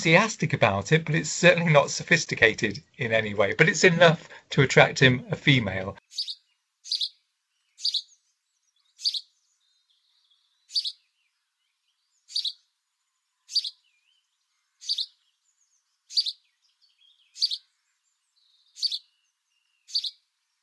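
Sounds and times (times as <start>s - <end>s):
speech: 0.0s - 7.0s
male house sparrow singing chirps: 5.0s - 20.6s.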